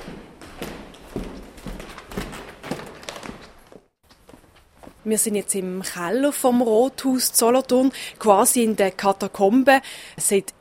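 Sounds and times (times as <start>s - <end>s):
footsteps walking to the town hall basement in Solothurn: 0.0s - 5.1s
speech: 5.0s - 10.5s.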